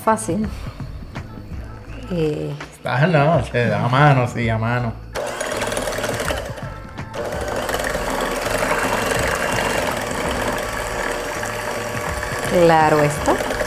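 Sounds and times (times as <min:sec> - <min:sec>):
speech: 0:00.0 - 0:00.8, 0:02.1 - 0:05.0, 0:12.5 - 0:13.6
electric hand mixer beating ingredients: 0:05.2 - 0:13.6.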